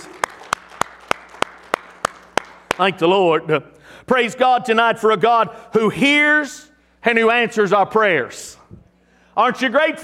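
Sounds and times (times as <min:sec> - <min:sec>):
audience hand clapping: 0:00.0 - 0:03.0
speech: 0:02.8 - 0:08.6, 0:09.4 - 0:10.0.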